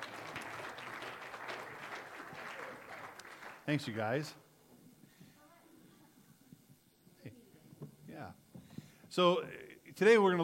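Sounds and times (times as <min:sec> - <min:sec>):
audience applause greeting a panel of speakers: 0:00.0 - 0:04.3
speech: 0:03.7 - 0:04.4, 0:09.2 - 0:10.4.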